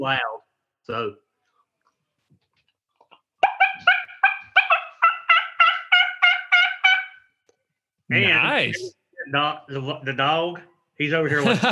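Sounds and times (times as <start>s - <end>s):
speech: 0.0s - 1.2s, 8.1s - 11.7s
turkey call gobbling with loud nasal rasping yelps: 3.4s - 7.4s
laughter: 11.3s - 11.7s.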